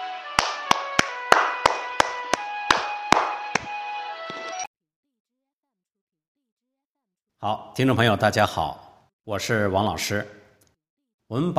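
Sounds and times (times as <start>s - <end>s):
applause: 0.4s - 3.7s
speech: 7.4s - 10.4s, 11.3s - 11.5s.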